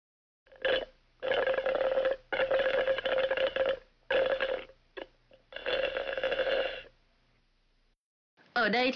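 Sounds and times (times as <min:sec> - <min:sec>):
juice slurped through a straw: 0:00.5 - 0:06.9.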